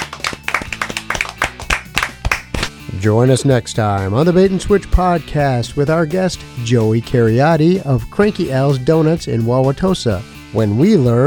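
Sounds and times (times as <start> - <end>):
hand claps: 0.0 - 2.7
speech: 3.0 - 11.2.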